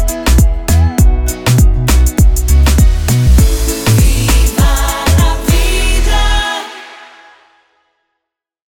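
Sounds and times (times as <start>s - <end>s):
island theme music: 1.2s - 7.8s.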